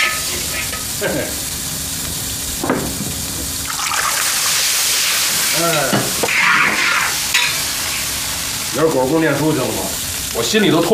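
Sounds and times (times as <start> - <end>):
utensil scraping a pan: 0.0 - 0.8, 5.0 - 8.2
oil sizzling and crackling as food is stir-fried in a pan: 0.0 - 10.9
speech: 1.0 - 1.5, 5.6 - 6.1, 8.7 - 10.9.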